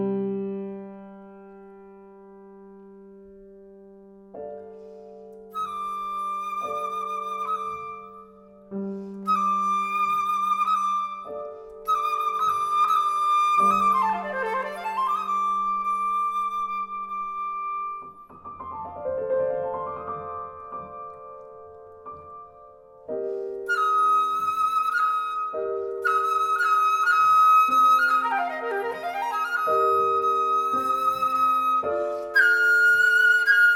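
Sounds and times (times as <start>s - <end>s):
pan flute: 5.4s - 19.4s, 23.1s - 33.7s.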